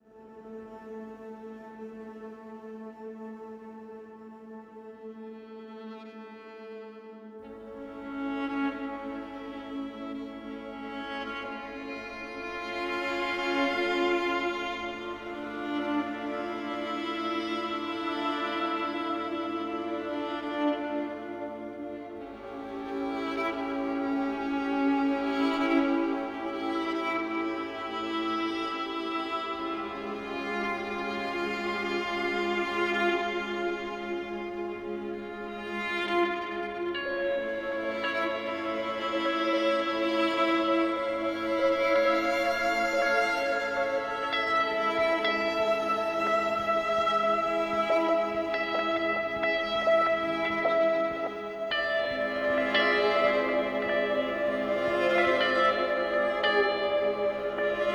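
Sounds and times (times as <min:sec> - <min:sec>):
violin: 0:00.0 - 0:57.9.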